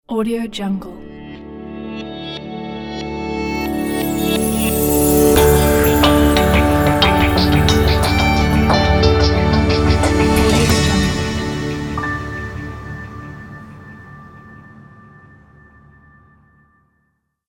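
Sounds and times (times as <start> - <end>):
atmospheric transparent logo sound: 3.5 - 16.9.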